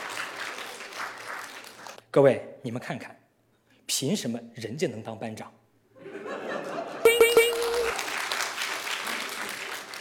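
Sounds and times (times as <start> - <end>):
audience applause: 0.0 - 2.0, 7.1 - 9.9
speech: 2.1 - 3.2, 3.9 - 5.6
laughter: 6.0 - 8.0.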